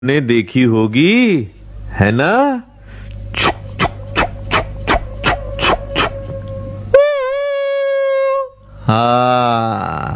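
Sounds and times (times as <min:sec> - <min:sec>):
speech: 0:00.0 - 0:02.7, 0:08.9 - 0:10.1
train whistle: 0:02.9 - 0:08.7.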